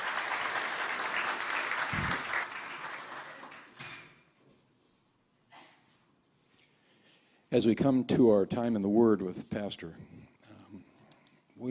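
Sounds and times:
applause at a church service: 0:00.0 - 0:04.2
speech: 0:07.5 - 0:10.3.

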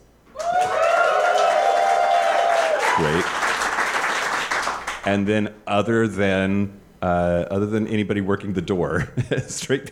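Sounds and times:
audience applause: 0:00.4 - 0:05.0
speech: 0:05.0 - 0:09.9.

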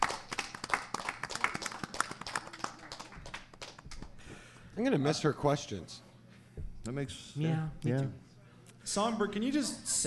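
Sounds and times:
round of applause: 0:00.0 - 0:04.2
speech: 0:04.8 - 0:06.1, 0:06.8 - 0:08.2, 0:08.9 - 0:10.0.

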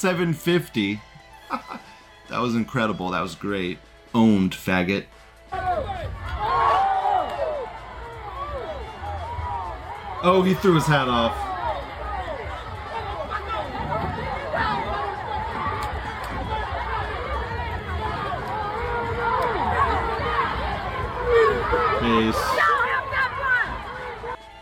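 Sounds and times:
speech: 0:00.0 - 0:06.7, 0:10.2 - 0:11.5
crowd yelling: 0:05.5 - 0:24.5.

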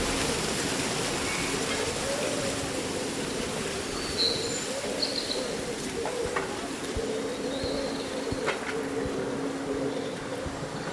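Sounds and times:
leaves rustling in a summer breeze: 0:00.0 - 0:10.9
low cooing drone: 0:04.7 - 0:10.9.

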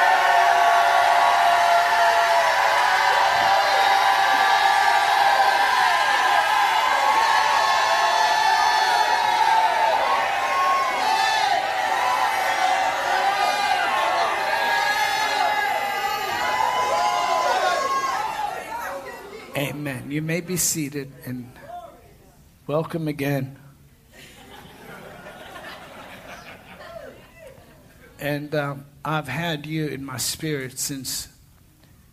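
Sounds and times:
church congregation shouting and cheering during a worship service: 0:00.0 - 0:19.8
speech: 0:20.1 - 0:21.7, 0:22.7 - 0:23.6, 0:28.2 - 0:31.4
laughter: 0:24.1 - 0:28.2.

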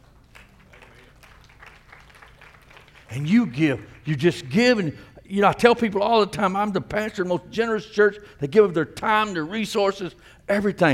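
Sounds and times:
audience clapping: 0:00.0 - 0:04.6
speech: 0:03.1 - 0:10.9.

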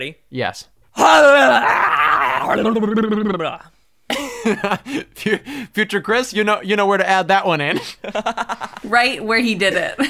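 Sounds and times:
speech: 0:00.0 - 0:03.7, 0:04.4 - 0:10.0
person mock screaming: 0:01.0 - 0:03.4.

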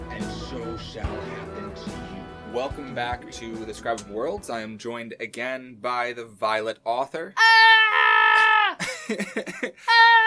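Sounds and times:
speech: 0:00.8 - 0:01.2, 0:02.5 - 0:07.7, 0:09.1 - 0:10.2
person screeching: 0:07.4 - 0:08.8, 0:09.8 - 0:10.2
person yelping: 0:07.4 - 0:08.8, 0:09.8 - 0:10.2
laughter: 0:08.8 - 0:09.9.

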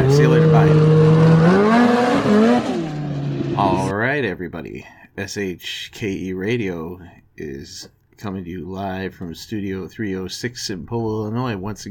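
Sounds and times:
snowmobile engine starting and driving off: 0:00.0 - 0:03.9
speech: 0:00.1 - 0:00.8, 0:04.3 - 0:11.8.

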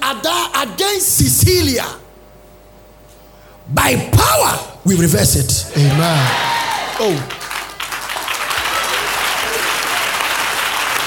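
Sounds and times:
speech: 0:00.1 - 0:02.0, 0:03.7 - 0:07.4
audience clapping at a church prayer gathering in Ghana: 0:05.8 - 0:11.0.

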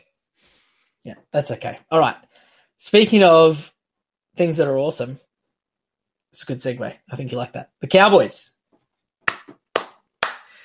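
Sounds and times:
speech: 0:01.0 - 0:03.8, 0:04.4 - 0:05.2, 0:06.3 - 0:08.6
hand claps: 0:09.2 - 0:10.6.

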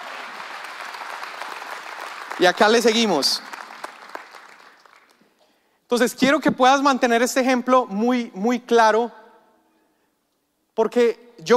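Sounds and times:
audience applause: 0:00.0 - 0:05.2
speech: 0:02.4 - 0:03.5, 0:05.9 - 0:09.2, 0:10.8 - 0:11.5.

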